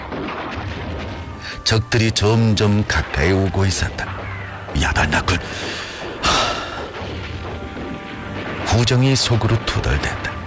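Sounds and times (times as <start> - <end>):
radio-drama artillery boom: 0.0 - 1.5, 2.1 - 10.4
speech: 1.7 - 4.2, 4.8 - 6.4, 8.7 - 10.3.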